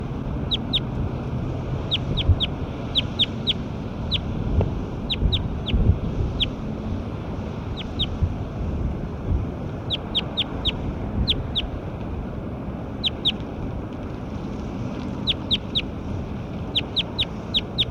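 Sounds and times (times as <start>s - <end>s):
low rumbling wind-like noise: 0.0s - 17.8s
high-pitched bird chirps: 0.5s - 0.9s, 1.8s - 4.3s, 5.1s - 6.6s, 7.7s - 8.2s, 9.9s - 11.7s, 13.0s - 13.4s, 15.2s - 15.9s, 16.7s - 17.8s.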